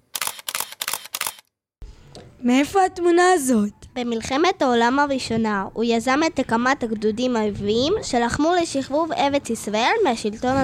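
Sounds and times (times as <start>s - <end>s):
camera shutter clicks taking a selfie: 0.0s - 1.5s
speech: 2.4s - 10.6s.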